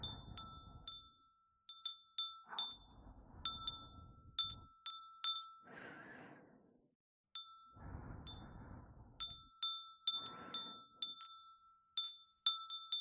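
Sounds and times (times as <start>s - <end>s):
breathing: 0.0s - 1.2s, 2.6s - 4.7s, 5.5s - 6.9s, 7.6s - 11.3s
glass wind chime: 0.0s - 5.7s, 7.4s - 8.6s, 9.2s - 12.9s.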